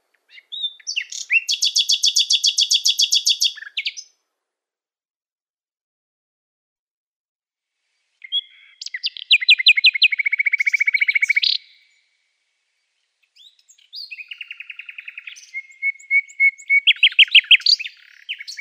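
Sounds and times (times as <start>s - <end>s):
Common nightingale singing sharp high notes and rapid rattling trills: 0.3s - 4.1s, 8.3s - 12.0s, 13.3s - 18.5s.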